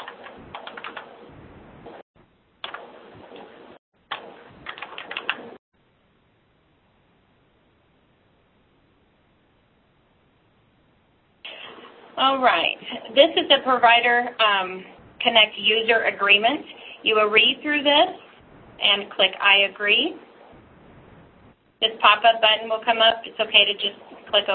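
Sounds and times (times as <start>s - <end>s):
typing a user ID and password on a computer keyboard: 0.0s - 1.0s, 4.1s - 5.4s
speech: 12.2s - 18.2s, 18.8s - 20.3s, 21.8s - 24.5s.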